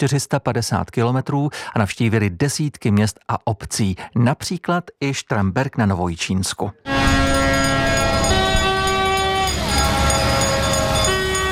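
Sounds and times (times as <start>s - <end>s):
speech: 0.0s - 7.2s
horns of historic fire engines: 6.8s - 11.5s.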